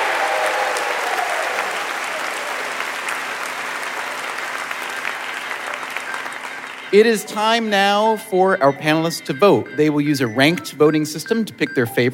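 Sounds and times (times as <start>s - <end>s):
audience round of applause: 0.0s - 7.6s
speech: 6.9s - 12.1s.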